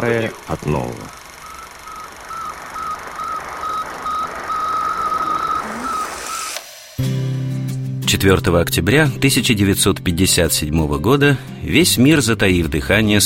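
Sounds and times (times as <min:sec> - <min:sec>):
speech: 0:00.0 - 0:01.2, 0:08.1 - 0:13.2
first satellite's radio signal beeps: 0:01.0 - 0:06.6.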